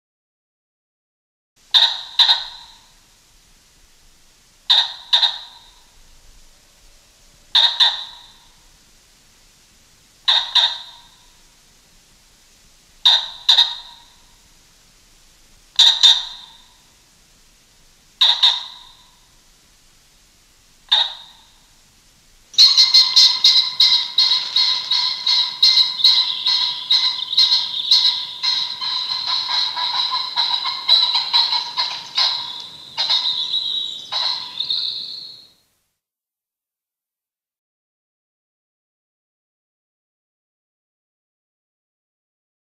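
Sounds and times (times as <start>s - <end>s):
American pheasant calling: 1.6s - 3.0s, 4.6s - 8.8s, 10.1s - 11.6s, 13.0s - 14.6s, 15.7s - 17.0s, 17.6s - 19.6s, 20.8s - 21.8s, 22.5s - 35.6s.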